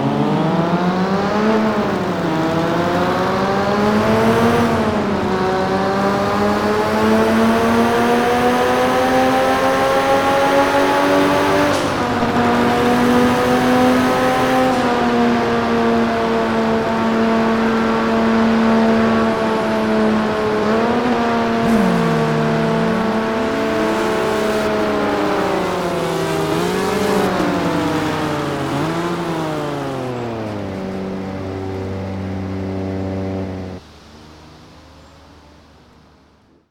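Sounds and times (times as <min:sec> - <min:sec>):
2002 Nissan Skyline ER34 GT-R edition car engine: 0:00.0 - 0:36.6.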